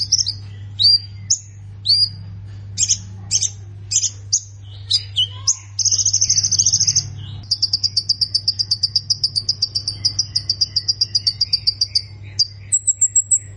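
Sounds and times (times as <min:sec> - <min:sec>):
plain prinia singing trill and ticks: 0:00.0 - 0:13.5
steady low hum: 0:00.0 - 0:13.5.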